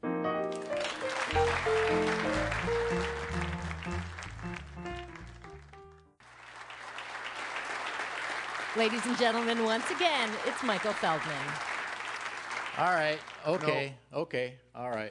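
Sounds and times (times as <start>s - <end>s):
jazz band music with low bass notes: 0.1s - 6.1s
audience applause at a live show: 0.4s - 13.8s
speech: 8.8s - 11.7s, 12.8s - 15.0s.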